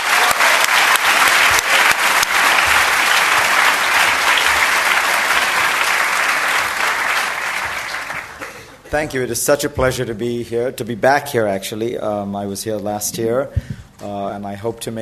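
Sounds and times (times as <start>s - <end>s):
evening lecture audience applause welcoming a speaker: 0.0s - 8.8s
speech: 8.9s - 14.9s.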